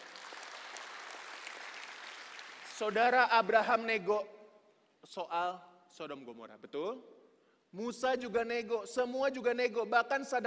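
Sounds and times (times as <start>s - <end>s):
audience applause: 0.0s - 2.9s
speech: 2.8s - 4.3s, 5.0s - 10.4s.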